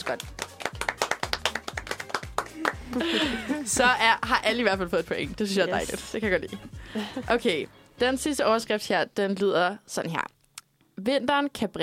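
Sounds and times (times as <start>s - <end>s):
small group clapping: 0.0s - 3.8s
speech: 0.1s - 0.9s, 2.6s - 10.4s, 11.0s - 11.8s
laughter: 2.5s - 4.0s.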